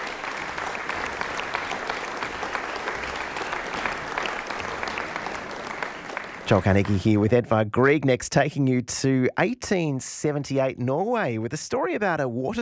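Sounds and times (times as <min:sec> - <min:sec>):
audience applauding after string quartet performance: 0:00.0 - 0:07.4
speech: 0:06.5 - 0:12.6.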